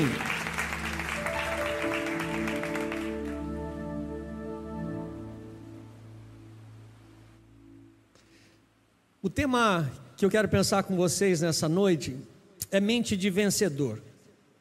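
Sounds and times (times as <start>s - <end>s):
speech: 0.0s - 0.3s, 9.2s - 14.1s
audience applauding: 0.0s - 3.8s.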